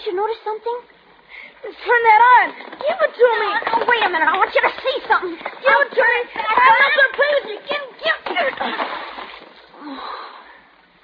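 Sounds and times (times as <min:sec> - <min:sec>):
speech: 0:00.1 - 0:01.0, 0:01.6 - 0:09.1, 0:09.8 - 0:10.3
object dropped into water splashing: 0:08.2 - 0:09.7.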